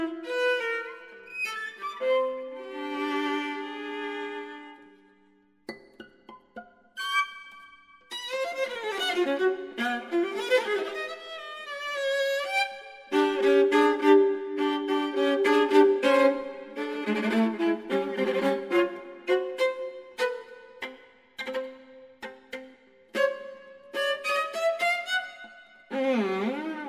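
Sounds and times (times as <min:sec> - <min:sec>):
viola playing a scherzo: 0:00.0 - 0:05.0, 0:05.7 - 0:26.8.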